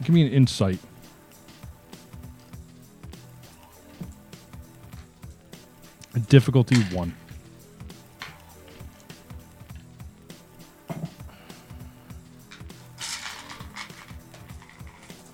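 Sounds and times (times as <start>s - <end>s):
speech: 0.1s - 0.9s, 6.3s - 7.2s
dice tumbling across a tabletop: 6.6s - 7.4s, 8.2s - 8.8s, 12.5s - 15.3s.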